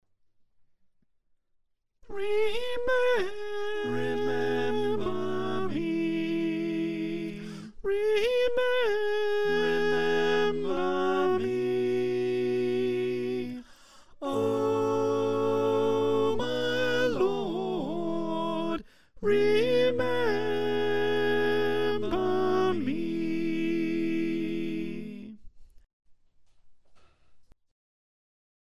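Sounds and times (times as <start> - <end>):
choir with soprano: 2.1 - 13.6, 14.2 - 25.4.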